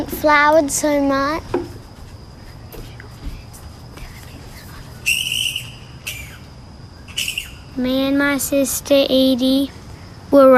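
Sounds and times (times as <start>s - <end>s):
speech: 0.0s - 1.6s, 7.8s - 10.5s
high insect-like whine: 0.0s - 10.5s
low rumble: 0.0s - 10.5s
bats screeching: 4.1s - 8.2s.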